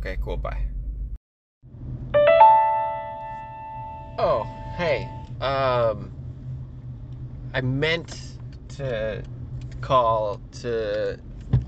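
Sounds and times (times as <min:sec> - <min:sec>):
speech: 0:00.0 - 0:00.8, 0:04.2 - 0:06.1, 0:07.5 - 0:11.3
low rumbling hum: 0:00.0 - 0:11.6
voicemail ding tone: 0:02.2 - 0:05.2.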